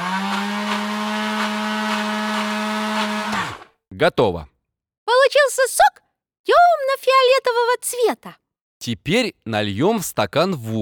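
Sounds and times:
electric juicer running: 0.0 - 3.8
speech: 4.0 - 4.5, 5.1 - 10.7.

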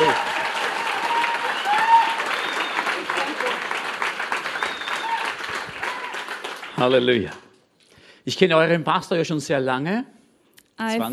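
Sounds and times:
audience applause: 0.0 - 7.5
speech: 6.8 - 7.4, 8.2 - 10.2, 10.8 - 11.1.

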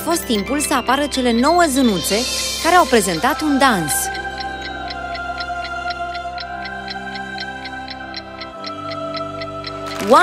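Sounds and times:
speech: 0.1 - 4.2, 10.1 - 10.2
bright mechanical ticking: 0.3 - 10.2
clock striking: 1.2 - 10.2.

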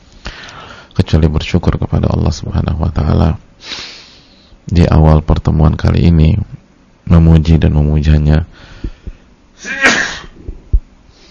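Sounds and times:
speech: 1.0 - 3.8, 4.7 - 8.5, 9.6 - 9.9
sneeze: 9.6 - 10.4.

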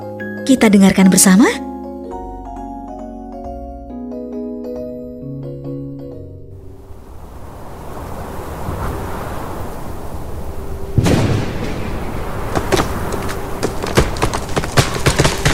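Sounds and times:
speech: 0.5 - 1.7
strong howling wind: 6.6 - 15.5.

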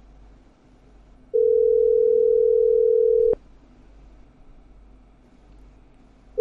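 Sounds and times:
steady telephone tone while a call is being placed: 1.3 - 3.4.

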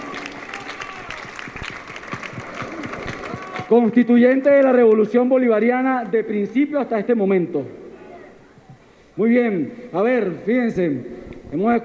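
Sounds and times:
audience applause at a political gathering: 0.0 - 5.1
speech: 3.7 - 7.8, 9.2 - 11.8.

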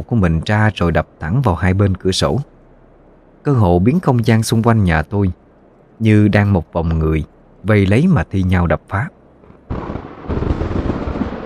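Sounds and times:
speech: 0.0 - 2.5, 3.4 - 5.4, 6.0 - 9.2
thunderclap in the night sky: 9.5 - 11.4.

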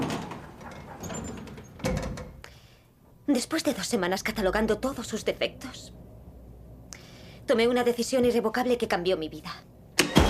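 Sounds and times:
elevator door sliding shut: 0.0 - 2.4
speech: 3.3 - 6.0, 7.5 - 9.7.

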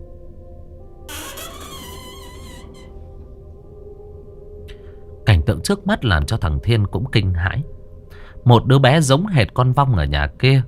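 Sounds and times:
door creaking open: 1.1 - 3.4
speech: 5.5 - 7.8, 8.4 - 10.6.

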